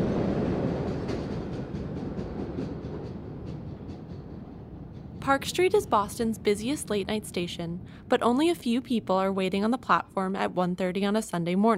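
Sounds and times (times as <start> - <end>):
subway wheels clacking over rail joints: 0.0 - 7.6
late-night subway train leaving the station: 0.0 - 10.3
speech: 5.2 - 11.7.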